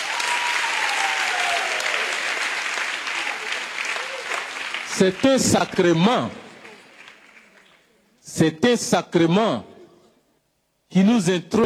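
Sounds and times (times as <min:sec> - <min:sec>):
audience applause: 0:00.0 - 0:07.9
speech: 0:05.0 - 0:06.4, 0:08.4 - 0:09.7, 0:10.9 - 0:11.6.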